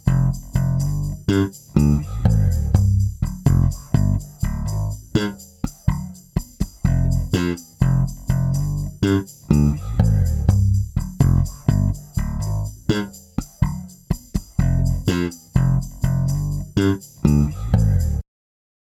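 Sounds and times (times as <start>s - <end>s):
funky bass: 0.0s - 18.2s.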